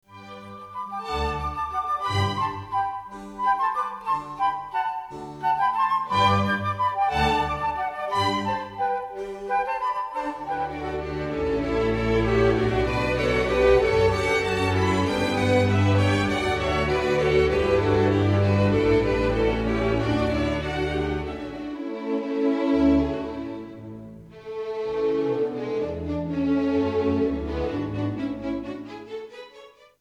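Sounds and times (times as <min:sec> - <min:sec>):
orchestral medley: 0:00.0 - 0:29.8.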